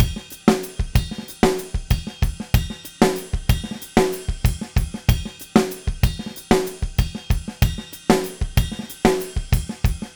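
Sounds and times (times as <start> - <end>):
drum kit: 0.0 - 10.1
samba Latin percussion: 0.0 - 10.1.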